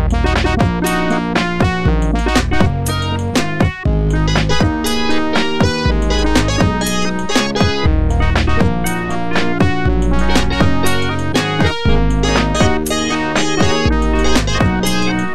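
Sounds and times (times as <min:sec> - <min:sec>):
ringtone: 0:00.1 - 0:15.3.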